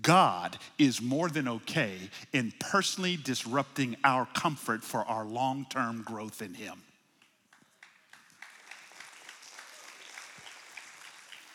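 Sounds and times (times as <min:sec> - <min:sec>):
speech: 0:00.1 - 0:06.9
audience clapping: 0:07.2 - 0:11.5.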